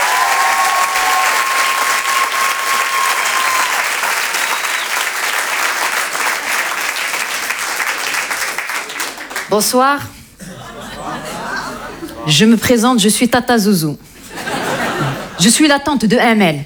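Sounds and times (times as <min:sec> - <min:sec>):
thunderous audience applause: 0:00.0 - 0:09.5
speech: 0:09.5 - 0:10.2, 0:12.2 - 0:14.1, 0:15.4 - 0:16.6
laughter: 0:10.4 - 0:12.5, 0:14.1 - 0:15.6.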